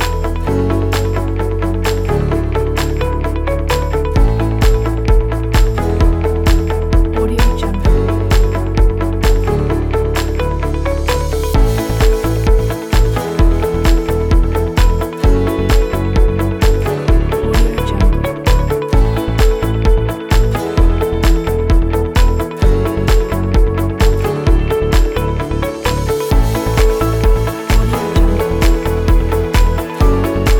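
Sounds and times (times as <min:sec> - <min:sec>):
upbeat corporate music: 0:00.0 - 0:30.5.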